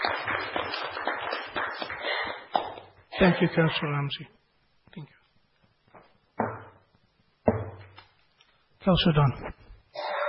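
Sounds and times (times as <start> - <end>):
applause: 0.0 - 2.9
speech: 3.2 - 4.4, 5.0 - 5.2, 8.9 - 9.6.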